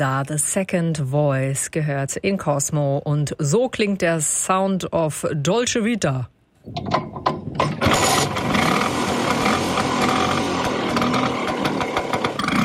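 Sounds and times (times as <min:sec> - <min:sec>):
speech: 0:00.0 - 0:08.0
Vespa scooter engine humming: 0:07.8 - 0:12.6.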